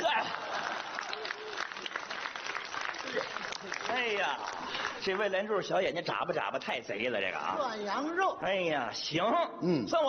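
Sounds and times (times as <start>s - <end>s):
audience applause: 0.0s - 5.3s
speech: 4.0s - 10.0s.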